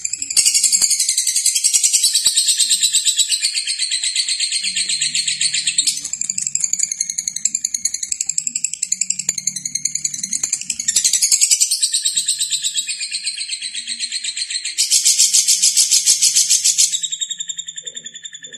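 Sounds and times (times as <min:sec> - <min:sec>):
lovebird singing in the konslet style: 0:00.0 - 0:18.5.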